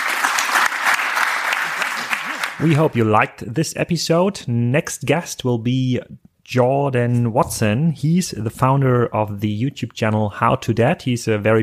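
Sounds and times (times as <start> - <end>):
big applause: 0.0 - 3.0
speech: 2.6 - 11.6.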